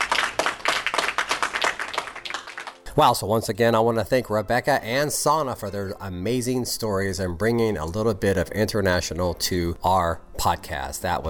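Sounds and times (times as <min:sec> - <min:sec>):
round of applause from a group: 0:00.0 - 0:02.9
speech: 0:03.0 - 0:11.2.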